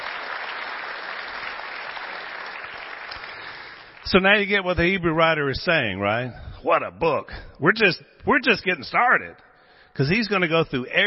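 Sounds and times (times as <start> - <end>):
audience applause: 0.0 - 4.1
speech: 4.0 - 11.0.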